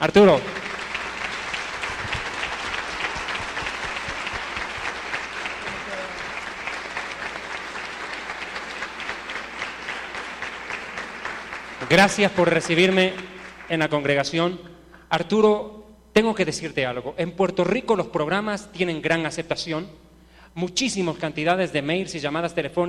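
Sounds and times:
speech: 0:00.0 - 0:00.5, 0:11.9 - 0:22.8
audience applause: 0:00.1 - 0:14.0.

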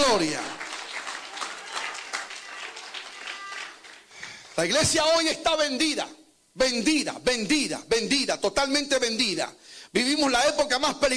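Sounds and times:
audience applause: 0:00.0 - 0:04.7
speech: 0:00.1 - 0:00.5, 0:04.6 - 0:11.1.

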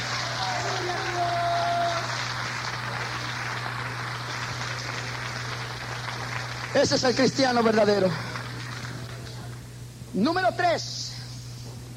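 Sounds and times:
audience applause: 0:00.0 - 0:09.6
low electrical hum: 0:00.0 - 0:11.9
speech: 0:06.8 - 0:08.3, 0:10.2 - 0:11.0.

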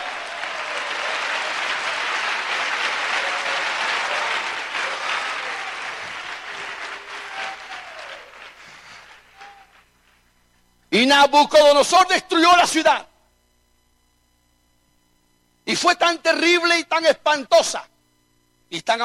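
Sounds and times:
audience clapping hands: 0:00.0 - 0:10.2
speech: 0:11.0 - 0:13.1, 0:15.8 - 0:17.9, 0:18.7 - 0:19.0.

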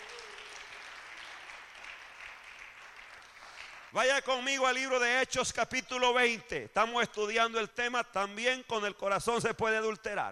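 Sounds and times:
audience applauding: 0:00.0 - 0:04.0
speech: 0:03.9 - 0:10.3.

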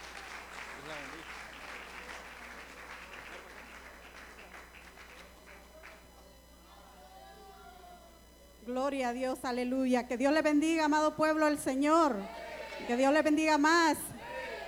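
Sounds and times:
audience applauding: 0:00.0 - 0:06.1
speech: 0:08.7 - 0:14.1.

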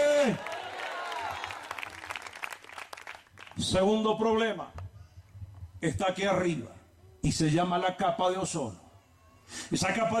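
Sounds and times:
speech: 0:00.2 - 0:00.5, 0:03.6 - 0:04.8, 0:05.8 - 0:08.8, 0:09.5 - 0:10.1
audience applause: 0:00.2 - 0:03.6.

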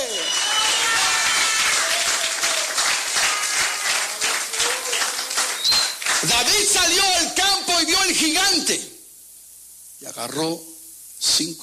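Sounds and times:
audience applause: 0:00.0 - 0:06.8
speech: 0:06.8 - 0:08.9, 0:10.0 - 0:10.7, 0:11.4 - 0:11.6.

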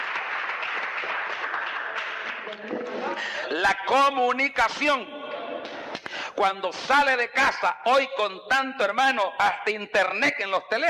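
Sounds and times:
audience applause: 0:00.0 - 0:03.4
speech: 0:02.5 - 0:05.2, 0:06.4 - 0:10.8.

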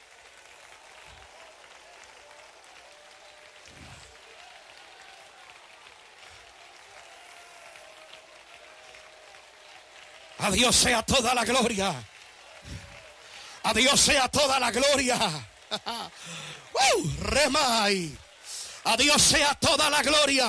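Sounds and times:
audience applause: 0:00.0 - 0:20.4
speech: 0:10.4 - 0:12.1, 0:13.7 - 0:18.2, 0:18.8 - 0:20.4
laughter: 0:14.7 - 0:17.6.

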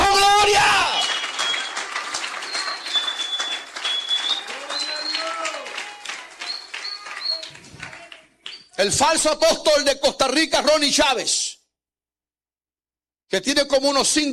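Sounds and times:
crowd applauding: 0:00.0 - 0:08.8
whistles: 0:00.6 - 0:08.8
speech: 0:08.8 - 0:11.5, 0:13.3 - 0:14.3.

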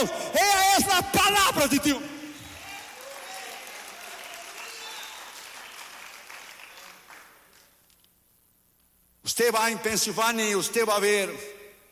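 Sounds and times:
speech: 0:00.0 - 0:02.1, 0:09.4 - 0:11.6
audience applause: 0:02.4 - 0:07.7.

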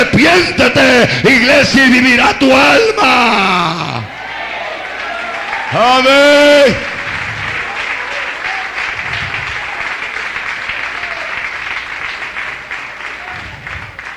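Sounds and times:
speech: 0:00.2 - 0:04.1, 0:05.7 - 0:06.9
applause: 0:04.8 - 0:14.1.

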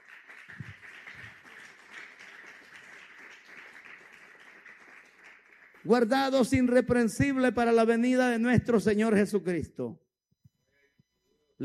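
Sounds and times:
audience clapping hands: 0:00.0 - 0:07.0
speech: 0:05.8 - 0:10.0.

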